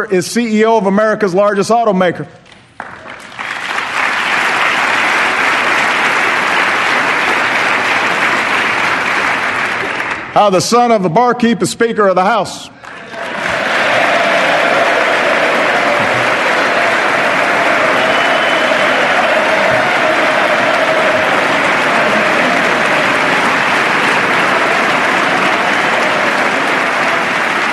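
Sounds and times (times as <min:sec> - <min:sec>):
speech: 0:00.0 - 0:02.4, 0:10.4 - 0:13.2
loud applause from a large audience: 0:02.8 - 0:10.3, 0:12.8 - 0:27.7.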